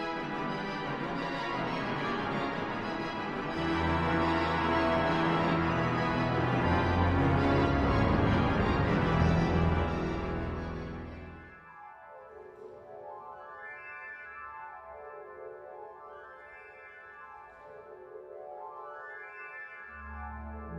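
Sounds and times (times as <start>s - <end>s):
symphonic trailer music: 0.0s - 11.6s.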